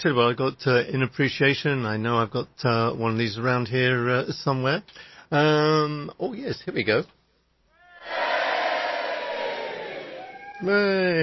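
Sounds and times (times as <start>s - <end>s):
speech: 0.0s - 7.2s, 10.6s - 11.2s
crowd cheering and shouting sound effect: 7.8s - 11.0s.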